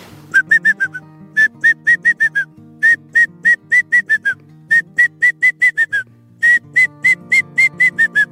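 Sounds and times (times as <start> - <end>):
ornate hawk-eagle adult and chick calls: 0.4 - 8.3.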